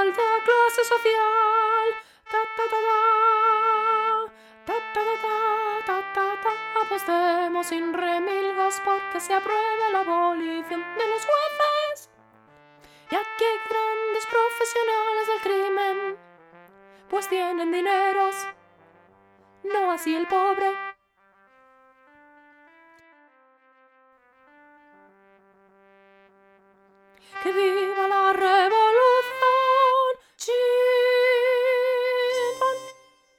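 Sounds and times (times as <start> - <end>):
soprano singing: 0.0 - 12.1, 13.1 - 16.2, 17.1 - 18.6, 19.6 - 21.0, 27.3 - 33.3.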